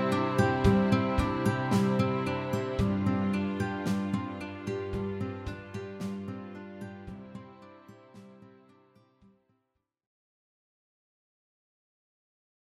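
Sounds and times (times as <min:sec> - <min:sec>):
guitar: 0:00.0 - 0:09.4.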